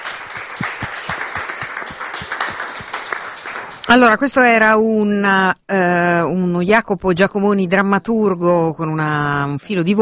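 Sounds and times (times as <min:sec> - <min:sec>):
audience applause: 0:00.0 - 0:03.9
speech: 0:03.9 - 0:09.9.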